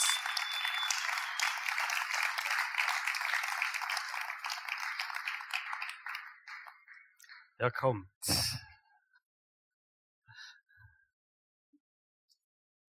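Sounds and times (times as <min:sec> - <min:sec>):
audience applause: 0:00.0 - 0:07.3
speech: 0:07.6 - 0:08.7.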